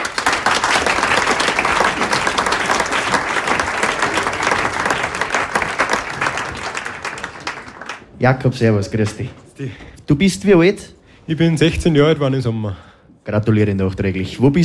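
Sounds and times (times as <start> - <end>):
audience applause: 0.0 - 8.2
speech: 8.2 - 14.6.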